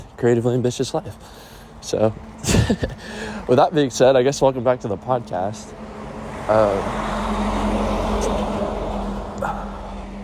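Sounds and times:
semi truck rolling past a home: 0.0s - 10.2s
speech: 0.2s - 7.5s.

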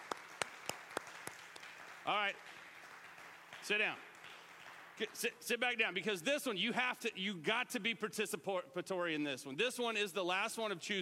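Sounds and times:
audience clapping: 0.0s - 5.8s
speech: 2.1s - 2.6s, 3.6s - 4.1s, 5.0s - 10.9s.

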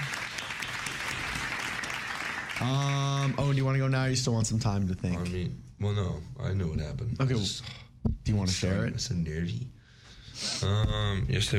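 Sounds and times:
applause from a small group: 0.0s - 3.7s
speech: 2.6s - 9.8s, 10.4s - 11.5s.

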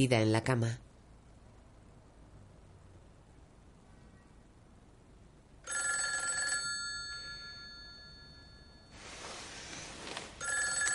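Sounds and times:
speech: 0.0s - 0.8s
telephone bell ringing: 5.7s - 9.0s, 10.4s - 10.9s.

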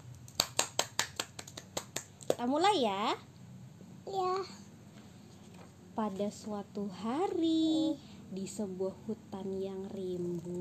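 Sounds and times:
hands clapping: 0.2s - 2.5s
speech: 2.4s - 3.3s, 4.1s - 4.6s, 6.0s - 10.5s.

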